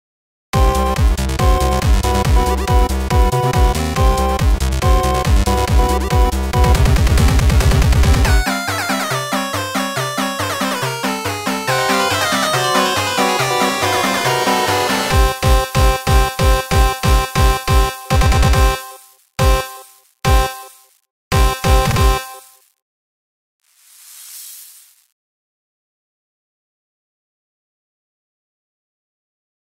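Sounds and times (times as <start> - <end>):
8-bit remix music: 0.5 - 22.7.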